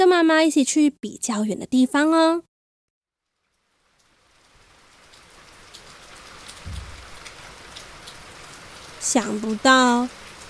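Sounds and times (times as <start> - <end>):
speech: 0.0 - 2.5, 9.0 - 10.2
heavy rain: 3.9 - 10.4
low thump: 6.6 - 7.3.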